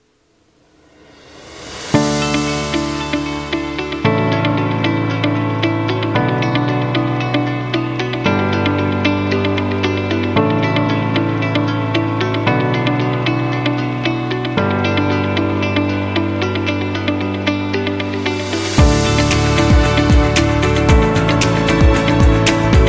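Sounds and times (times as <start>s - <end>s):
positive corporate business music: 2.0s - 22.8s.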